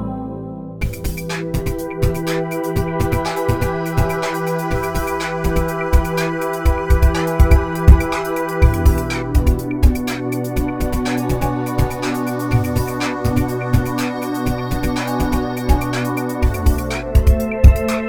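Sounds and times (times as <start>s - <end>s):
drama synthesizer pad: 0.0s - 18.0s.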